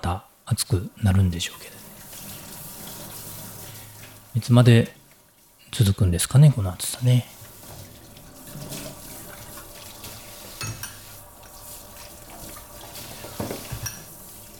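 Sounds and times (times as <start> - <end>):
speech: 0.0 - 1.8, 4.4 - 5.0, 5.7 - 7.4
running tap water: 0.0 - 14.5
plates and utensils clinking and knocking: 8.5 - 11.2, 13.2 - 14.2.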